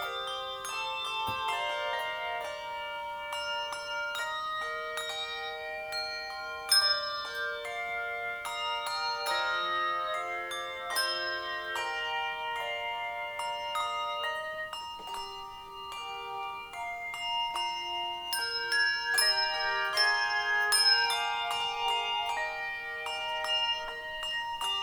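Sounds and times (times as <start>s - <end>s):
handbells ringing: 0.0s - 24.8s.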